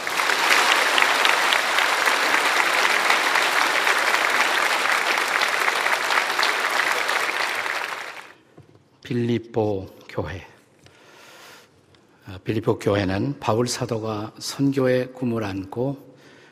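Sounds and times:
audience applauding: 0.0s - 8.4s
speech: 9.1s - 10.5s, 12.3s - 16.1s.

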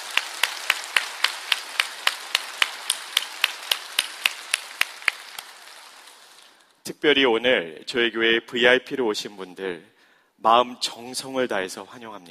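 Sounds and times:
audience applauding: 0.0s - 6.7s
speech: 6.9s - 12.3s.

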